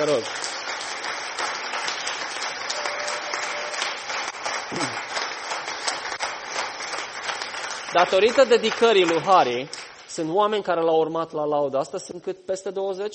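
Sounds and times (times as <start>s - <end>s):
speech: 0.0s - 0.5s, 7.9s - 13.1s
audience applause: 0.0s - 10.2s.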